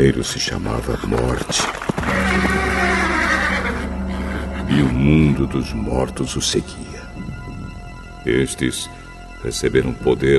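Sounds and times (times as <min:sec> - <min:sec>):
speech: 0:00.0 - 0:03.4, 0:04.7 - 0:07.0, 0:08.2 - 0:10.3
horse neighing: 0:02.0 - 0:04.7.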